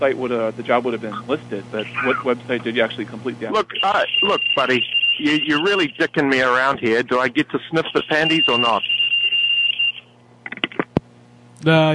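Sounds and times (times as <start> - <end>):
speech: 0.0 - 9.0, 11.6 - 11.9
electronic alarm tone: 3.5 - 10.1.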